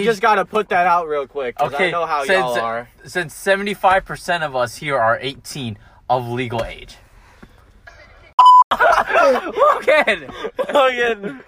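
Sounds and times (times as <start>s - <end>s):
speech: 0.0s - 7.0s, 8.7s - 11.4s
electronic censor bleep: 8.4s - 8.7s
laughter: 8.7s - 11.4s.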